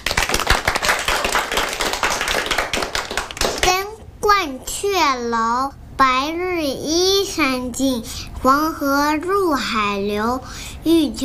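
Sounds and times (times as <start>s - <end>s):
audience applause: 0.0s - 3.6s
speech: 5.0s - 11.2s.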